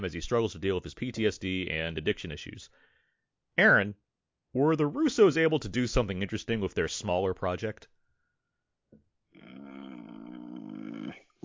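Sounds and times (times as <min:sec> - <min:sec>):
speech: 0:00.0 - 0:02.9, 0:03.6 - 0:07.9
man groaning in displeasure: 0:09.3 - 0:11.4.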